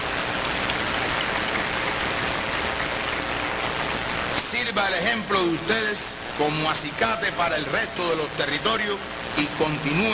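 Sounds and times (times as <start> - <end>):
large audience applause: 0.0 - 3.7
speech: 4.8 - 10.1.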